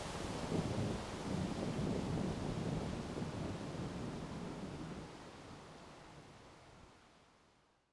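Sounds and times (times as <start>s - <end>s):
storm soundscape: 0.1s - 5.1s.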